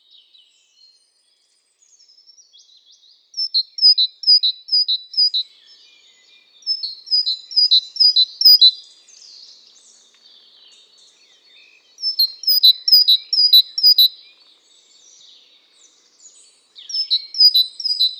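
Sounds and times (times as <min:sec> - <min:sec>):
great tit singing: 0:03.4 - 0:05.4, 0:06.7 - 0:14.4, 0:15.0 - 0:18.1.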